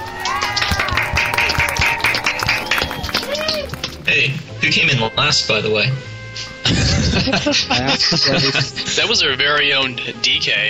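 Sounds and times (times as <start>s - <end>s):
crowd clapping: 0.0s - 4.1s
laughter: 0.0s - 4.2s, 6.4s - 9.4s
speech: 4.1s - 10.6s.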